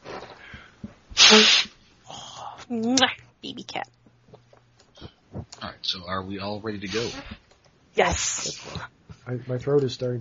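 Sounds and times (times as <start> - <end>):
person blowing nose: 1.2 - 1.8, 6.9 - 7.4
speech: 1.3 - 1.7, 2.7 - 4.0, 5.9 - 7.4, 8.0 - 10.1
faint snuffle: 6.8 - 7.3.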